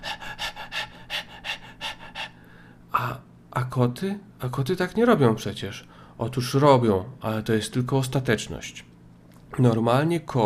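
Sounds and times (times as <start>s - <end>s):
person imitating dog panting: 0.0s - 2.4s
speech: 3.6s - 8.9s, 9.5s - 10.4s.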